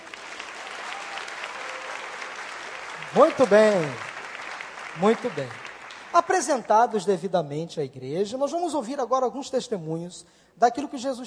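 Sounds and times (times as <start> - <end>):
audience applause: 0.0 - 7.0
speech: 3.1 - 4.0, 5.0 - 11.2.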